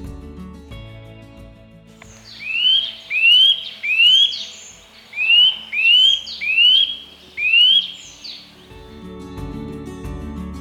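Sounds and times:
nuthatch calls: 0:02.0 - 0:08.9.

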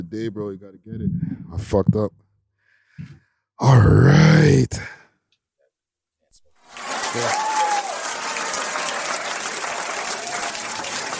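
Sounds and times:
speech: 0:00.0 - 0:02.2, 0:03.0 - 0:05.0, 0:07.1 - 0:07.5
audience hand claps: 0:06.7 - 0:11.1.

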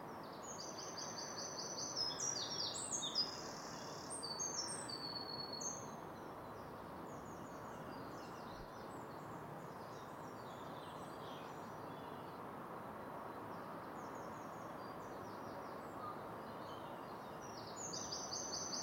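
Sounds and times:
wrens singing at dawn: 0:00.2 - 0:12.4, 0:13.6 - 0:18.8.

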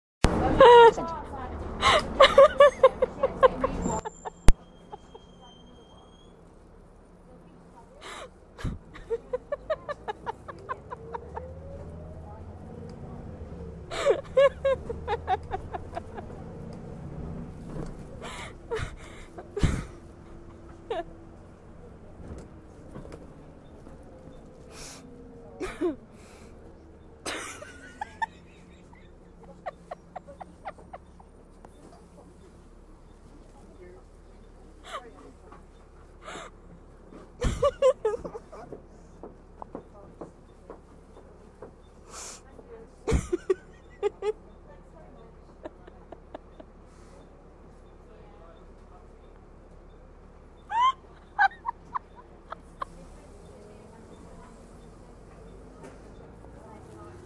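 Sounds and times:
people laughing on a bus: 0:00.4 - 0:01.2, 0:01.8 - 0:05.5, 0:08.0 - 0:12.7, 0:13.3 - 0:16.7, 0:18.0 - 0:21.2, 0:25.6 - 0:26.0, 0:27.2 - 0:32.1, 0:37.4 - 0:38.8, 0:43.1 - 0:44.6, 0:45.2 - 0:47.2, 0:50.7 - 0:54.9.

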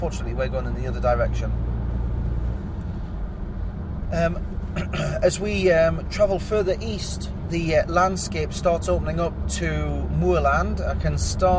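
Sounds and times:
speech: 0:00.0 - 0:01.8, 0:04.1 - 0:11.5
road traffic passing: 0:00.0 - 0:11.5.

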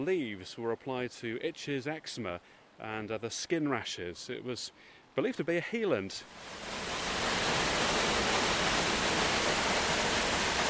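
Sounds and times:
speech: 0:00.0 - 0:07.0
waterfall white water plunging vertically over rock: 0:06.3 - 0:10.6.

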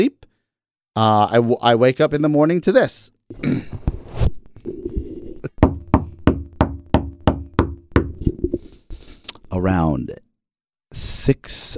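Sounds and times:
speech: 0:01.0 - 0:03.8, 0:09.6 - 0:10.2, 0:11.0 - 0:11.7
knocking from the ceiling: 0:05.6 - 0:08.6.

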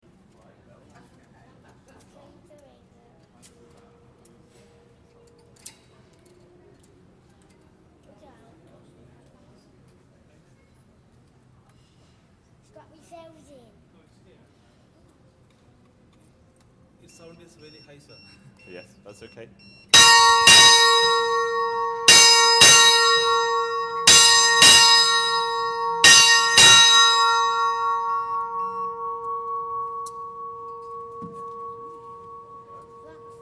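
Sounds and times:
loud bell: 0:20.0 - 0:33.4.

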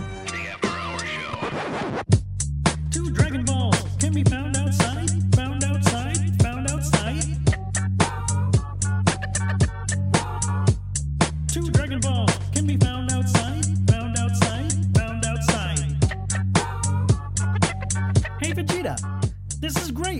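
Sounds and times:
rap music: 0:00.1 - 0:20.1.

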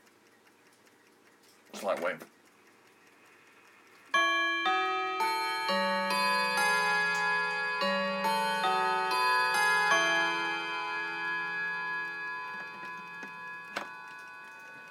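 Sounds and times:
clock ticking: 0:00.0 - 0:14.8
speech: 0:01.8 - 0:02.4
clock chiming a melody: 0:03.8 - 0:14.8.

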